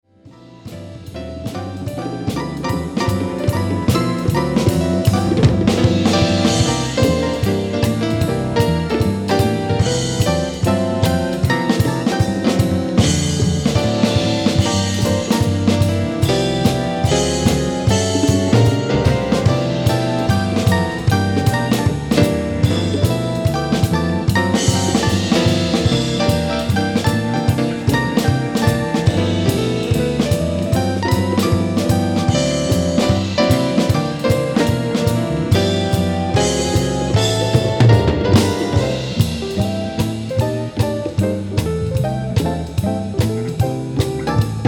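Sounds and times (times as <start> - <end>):
jam session: 0.2 - 44.6.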